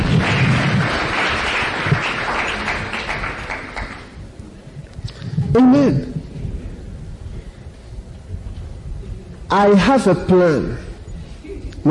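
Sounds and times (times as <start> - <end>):
audience clapping: 0.0 - 4.2
speech: 5.6 - 6.1, 9.5 - 10.9.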